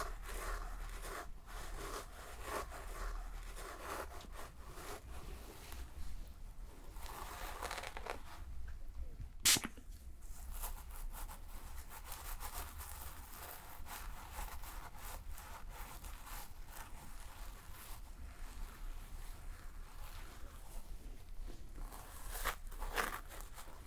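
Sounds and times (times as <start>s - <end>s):
shampoo lathering and hair brushing: 0.0s - 8.5s, 10.4s - 23.8s
sharp click: 9.4s - 9.8s.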